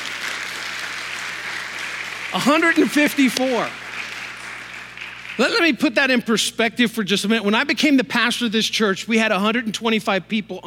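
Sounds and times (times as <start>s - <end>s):
audience clapping: 0.0s - 5.9s
speech: 2.3s - 3.8s, 5.4s - 10.6s.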